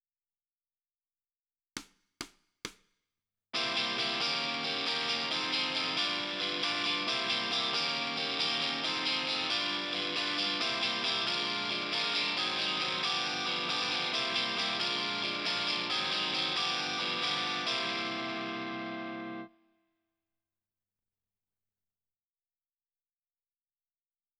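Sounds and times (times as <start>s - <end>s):
guitar: 3.6s - 19.6s.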